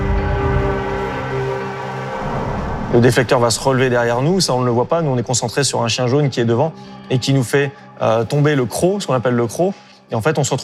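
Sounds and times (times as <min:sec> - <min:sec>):
jet engines roaring at full thrust: 0:00.0 - 0:04.8
speech: 0:02.9 - 0:10.6.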